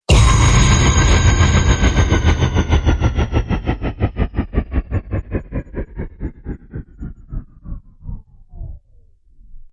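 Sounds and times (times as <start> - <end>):
downer hit: 0.1 - 5.5.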